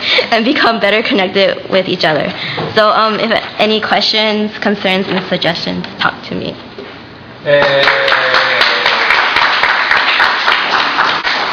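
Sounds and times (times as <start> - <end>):
speech: 0.3 - 6.6, 7.4 - 8.2
crowd applause: 7.5 - 11.5.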